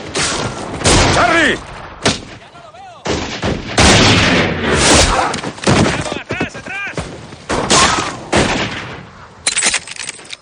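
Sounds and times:
gunfire in a western-film shootout: 0:00.0 - 0:02.4, 0:03.0 - 0:06.2, 0:06.9 - 0:09.1.

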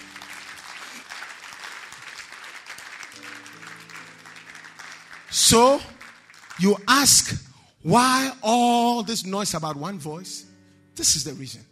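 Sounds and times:
audience clapping: 0:00.0 - 0:07.4
speech: 0:05.3 - 0:05.9, 0:06.6 - 0:11.6.

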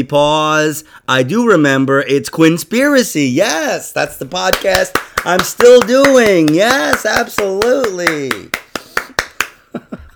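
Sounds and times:
speech: 0:00.0 - 0:08.6
hand clapping: 0:04.4 - 0:09.7.

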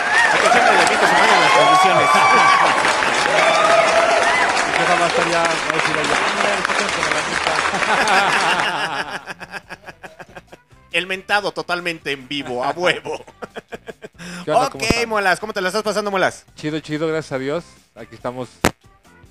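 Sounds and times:
whoops and laughter: 0:00.0 - 0:04.6, 0:07.7 - 0:10.5
crowd clapping and cheering: 0:00.0 - 0:10.5
speech: 0:05.1 - 0:09.9, 0:11.0 - 0:13.4, 0:14.4 - 0:18.7.

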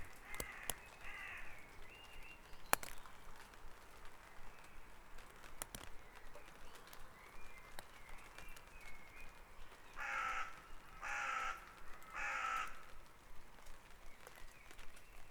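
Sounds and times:
bird harsh cawing: 0:00.2 - 0:01.6, 0:10.0 - 0:12.9.

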